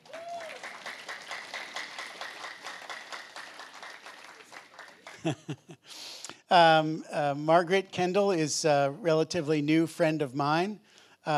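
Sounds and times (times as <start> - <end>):
audience applause: 0.0 - 5.6
laughter: 4.3 - 5.8
speech: 5.2 - 11.3.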